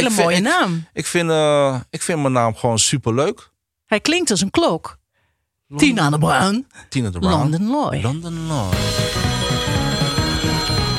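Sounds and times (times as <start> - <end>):
speech: 0.0 - 5.0, 5.7 - 9.3
telephone ringing: 8.8 - 10.9.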